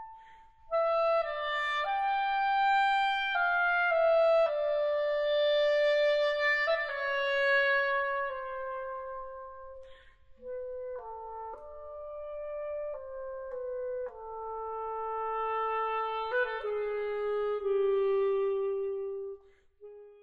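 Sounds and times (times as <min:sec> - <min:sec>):
solo B flat clarinet: 0:00.0 - 0:20.2.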